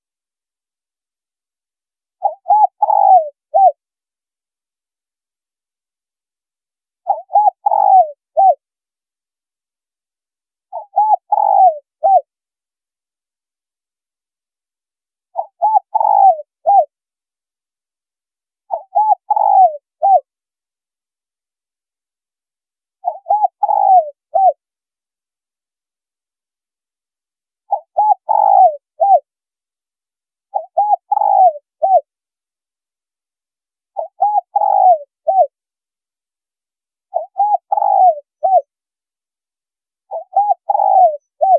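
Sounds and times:
spotted dove cooing: 2.2s - 3.8s, 7.1s - 8.6s, 10.7s - 12.3s, 15.4s - 16.9s, 18.7s - 20.3s, 23.0s - 24.6s, 27.7s - 29.2s, 30.5s - 32.1s, 34.0s - 35.5s, 37.1s - 38.7s, 40.1s - 41.5s.

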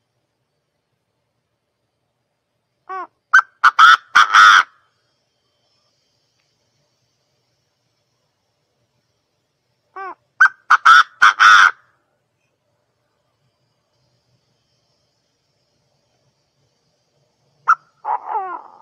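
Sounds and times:
partridge calling: 2.9s - 4.8s, 9.9s - 11.8s, 17.6s - 18.7s.

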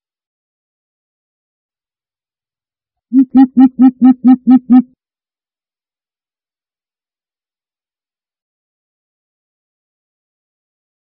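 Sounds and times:
greater coucal deep hollow hoots: 3.2s - 4.8s.

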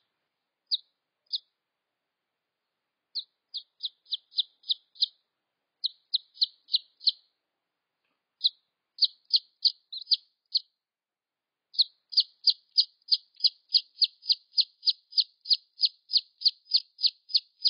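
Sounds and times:
red junglefowl chick peeps: 0.7s - 1.5s, 3.1s - 5.2s, 5.8s - 7.2s, 8.4s - 10.7s, 11.8s - 17.6s.

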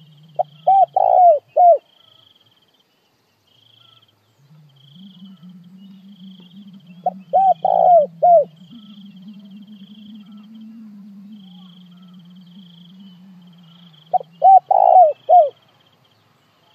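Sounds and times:
low droning hum: 0.0s - 1.6s, 4.3s - 15.5s
spotted dove cooing: 0.0s - 1.9s, 4.4s - 15.6s
faint high insect buzz: 0.0s - 16.7s.

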